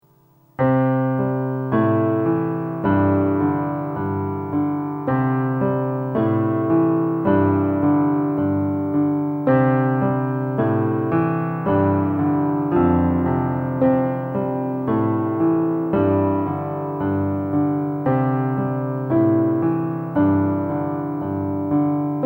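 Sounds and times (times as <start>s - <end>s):
solo piano: 0.0s - 22.2s.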